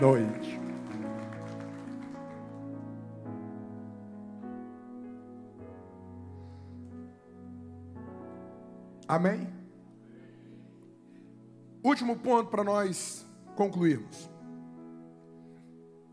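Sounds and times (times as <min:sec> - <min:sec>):
speech: 0:00.0 - 0:00.6, 0:09.1 - 0:09.6, 0:11.8 - 0:14.3
audience applauding: 0:00.0 - 0:03.2
sustained warm keyboard chords: 0:00.0 - 0:16.1.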